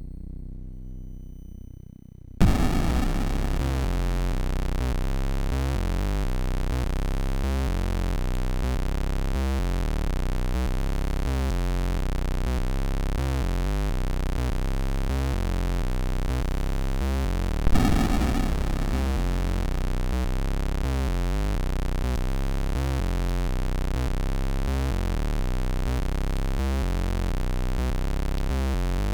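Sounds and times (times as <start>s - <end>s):
MOS 6581R2 SID chip music: 2.4s - 12.5s, 13.4s - 29.1s.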